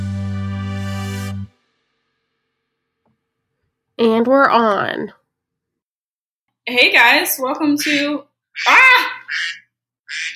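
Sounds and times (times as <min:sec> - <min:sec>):
speech: 0:04.0 - 0:05.2, 0:06.7 - 0:10.3
phone ringtone of a duck quacking: 0:07.8 - 0:10.3.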